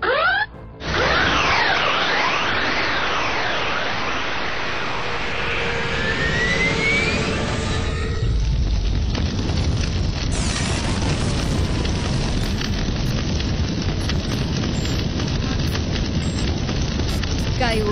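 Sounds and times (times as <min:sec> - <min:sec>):
spaceship plunging through a portal whooshing: 0:00.8 - 0:08.5
spaceship catching fire crackling roar: 0:00.8 - 0:17.9.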